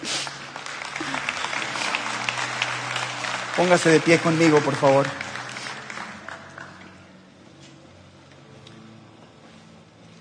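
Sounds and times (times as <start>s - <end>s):
audience applause: 0.0s - 7.1s
speech: 3.6s - 5.2s.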